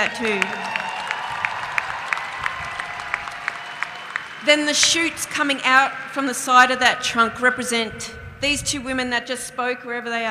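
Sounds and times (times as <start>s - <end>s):
speech: 0.0s - 0.8s, 4.4s - 10.2s
audience applause: 0.0s - 5.7s.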